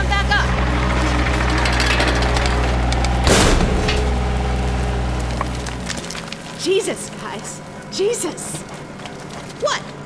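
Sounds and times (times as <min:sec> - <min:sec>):
low rumble: 0:00.0 - 0:06.6
roof caving in, wood splintering and debris collapsing: 0:00.3 - 0:09.6
crackling and clattering: 0:00.4 - 0:07.9, 0:08.5 - 0:09.7
speech: 0:06.9 - 0:08.7.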